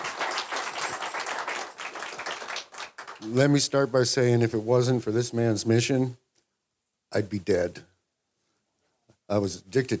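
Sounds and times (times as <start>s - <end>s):
crowd applauding: 0.0s - 3.4s
speech: 3.2s - 6.2s, 7.1s - 7.9s, 9.3s - 9.9s.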